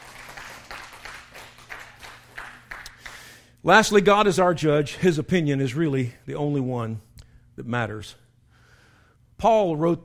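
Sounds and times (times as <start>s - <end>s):
audience clapping: 0.0s - 3.4s
speech: 3.6s - 8.2s, 9.4s - 10.0s.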